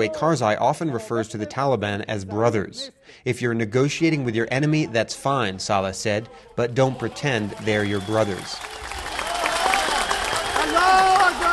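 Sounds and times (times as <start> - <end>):
speech: 0.0 - 9.1
rally crowd applauding: 6.8 - 11.5.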